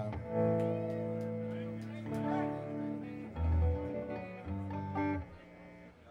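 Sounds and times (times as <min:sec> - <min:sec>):
instrument tuning: 0:00.1 - 0:05.9.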